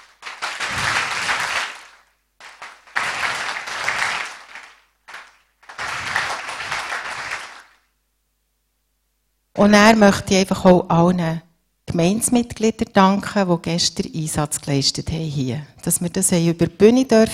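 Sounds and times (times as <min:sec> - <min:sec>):
crowd applause: 0:00.0 - 0:07.8
speech: 0:09.6 - 0:17.3.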